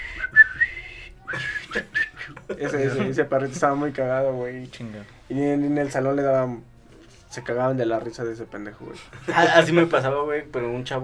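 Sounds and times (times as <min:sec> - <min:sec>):
person whistling a melody imitating a phone ringtone: 0:00.0 - 0:02.4
laughter: 0:01.3 - 0:03.9, 0:08.9 - 0:10.0
speech: 0:02.5 - 0:06.7, 0:07.4 - 0:11.0.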